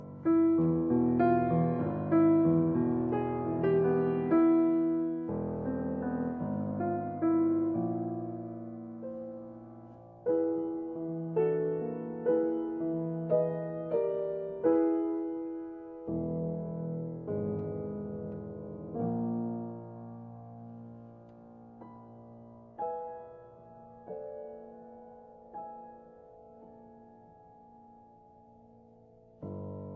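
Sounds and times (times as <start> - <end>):
piano sonata: 0.0 - 29.9.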